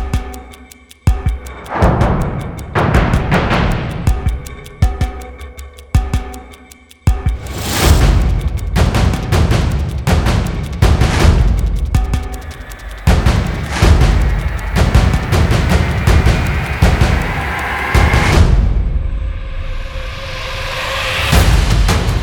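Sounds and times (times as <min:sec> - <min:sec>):
drums: 0:00.0 - 0:22.2
rising riser: 0:01.4 - 0:04.9, 0:07.4 - 0:09.0, 0:11.0 - 0:18.7.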